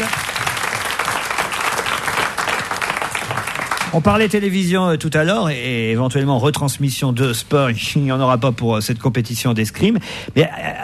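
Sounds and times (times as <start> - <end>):
audience applause: 0.0 - 4.2
speech: 3.9 - 10.8.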